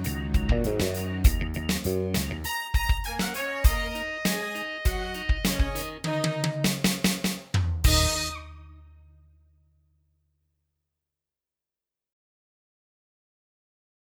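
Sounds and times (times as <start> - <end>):
drums: 0.0 - 8.6
funk music: 0.0 - 8.9.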